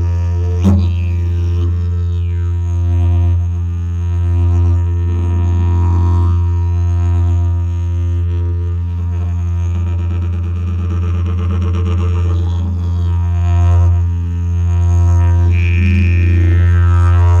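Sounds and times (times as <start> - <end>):
didgeridoo: 0.0 - 17.3.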